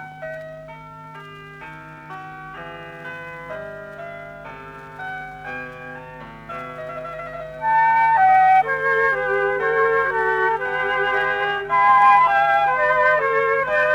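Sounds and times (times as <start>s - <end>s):
concerto movement in D major: 6.8s - 13.9s.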